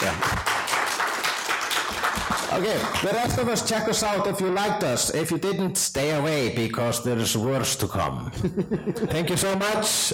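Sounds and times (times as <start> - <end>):
audience applause: 0.0 - 3.2
speech: 2.6 - 10.1
laughter: 8.3 - 10.1.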